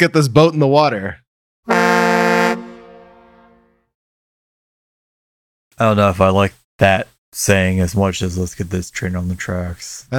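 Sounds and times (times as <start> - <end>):
speech: 0.0 - 1.8, 5.8 - 10.1
air horn blast: 1.7 - 3.9.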